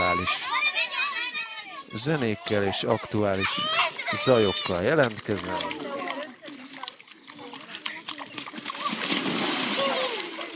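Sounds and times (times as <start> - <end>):
speech: 0.2 - 0.6, 2.0 - 6.0
water splashing on the Danube bank during a heat dome: 3.2 - 10.5.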